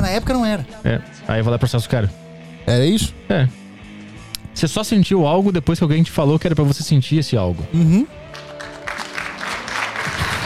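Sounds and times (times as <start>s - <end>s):
speech: 0.1s - 3.6s, 4.6s - 8.2s
audience applause: 8.3s - 10.4s.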